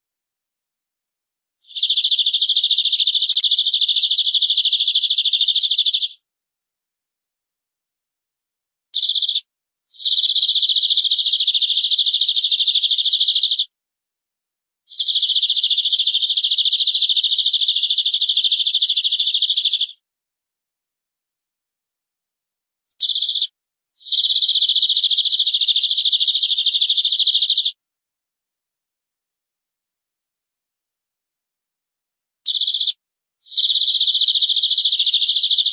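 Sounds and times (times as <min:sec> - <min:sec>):
canary trilling: 0:01.7 - 0:06.2, 0:09.0 - 0:09.4, 0:10.0 - 0:13.6, 0:15.0 - 0:20.0, 0:23.0 - 0:27.8, 0:32.5 - 0:35.7.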